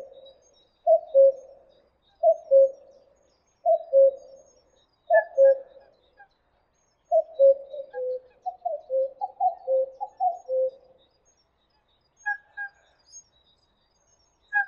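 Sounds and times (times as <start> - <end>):
common cuckoo calling: 0.0 - 4.5, 5.1 - 6.0, 7.1 - 10.9, 12.2 - 12.8.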